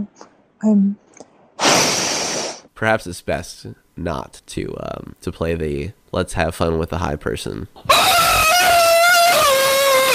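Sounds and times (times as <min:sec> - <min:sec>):
speech: 0:00.1 - 0:01.3, 0:02.8 - 0:08.2
turkey screaming: 0:07.9 - 0:10.1.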